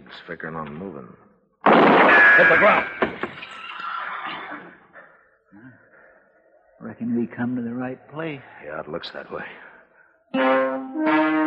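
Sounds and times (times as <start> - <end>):
speech: 0.1 - 3.6, 6.8 - 9.7, 10.3 - 11.4
saddled horse whinnying: 3.4 - 4.7.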